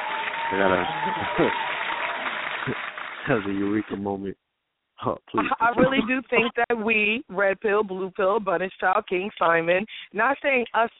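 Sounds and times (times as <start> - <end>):
applause: 0.0 - 4.3
speech: 0.5 - 1.8, 2.6 - 4.4, 5.0 - 10.9
laughter: 0.6 - 1.6, 2.6 - 4.3, 5.0 - 6.6.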